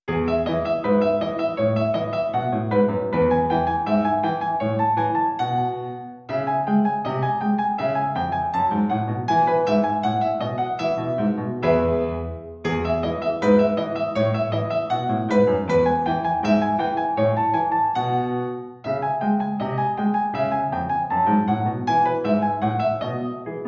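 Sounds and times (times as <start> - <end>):
piano piece: 0.0 - 23.6.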